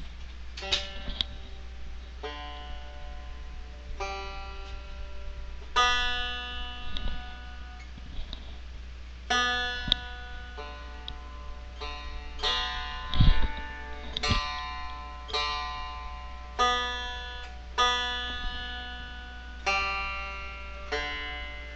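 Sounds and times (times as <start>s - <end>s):
Fender banjo: 0.6s - 7.7s, 9.3s - 21.7s.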